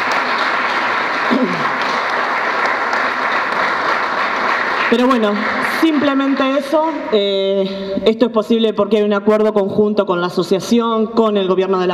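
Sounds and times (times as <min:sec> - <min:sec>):
audience applause: 0:00.0 - 0:07.1
speech: 0:01.3 - 0:01.7, 0:04.9 - 0:11.9.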